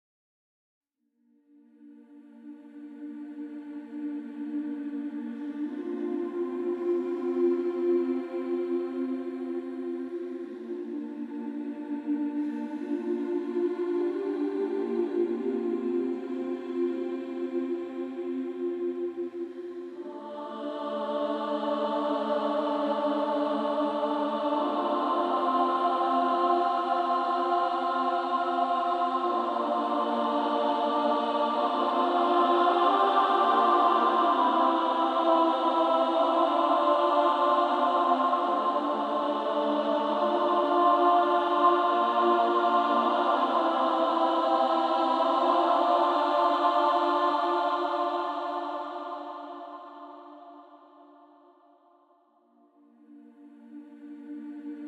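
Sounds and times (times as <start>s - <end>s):
choir singing: 1.5s - 54.8s.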